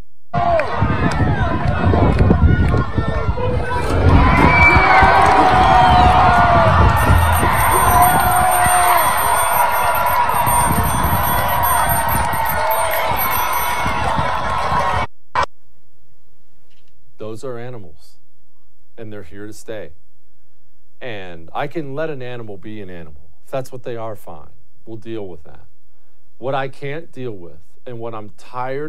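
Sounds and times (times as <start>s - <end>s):
large crowd cheering in a played video: 0.4s - 15.1s
speech: 19.2s - 20.0s, 21.6s - 25.6s, 26.4s - 28.8s.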